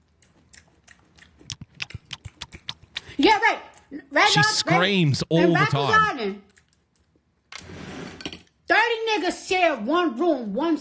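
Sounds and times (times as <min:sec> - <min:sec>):
person chewing crunchy cereal: 0:00.0 - 0:05.2
speech: 0:03.2 - 0:06.5, 0:09.2 - 0:10.8.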